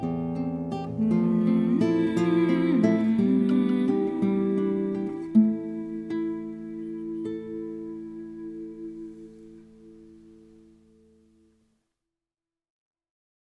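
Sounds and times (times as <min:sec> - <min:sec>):
musical accompaniment guide: 0:00.1 - 0:10.8.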